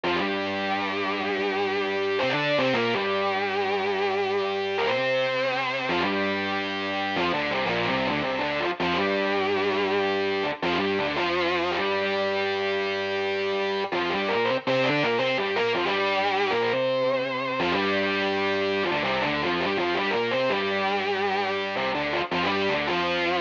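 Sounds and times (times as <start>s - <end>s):
smooth RnB guitar in A: 0.0s - 23.3s.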